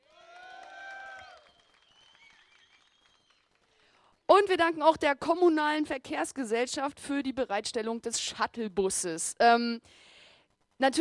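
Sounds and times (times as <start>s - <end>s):
high whistles and cheers: 0.0s - 3.9s
live audience applause: 0.0s - 4.0s
speech: 4.4s - 10.1s, 10.8s - 10.9s.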